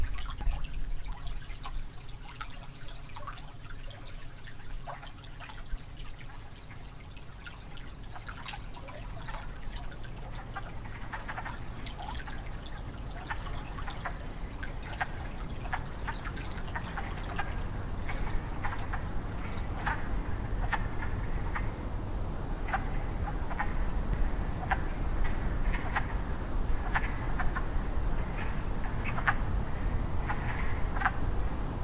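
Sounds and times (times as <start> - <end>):
water: 0.0 - 31.8
wood frogs calling: 6.4 - 31.4.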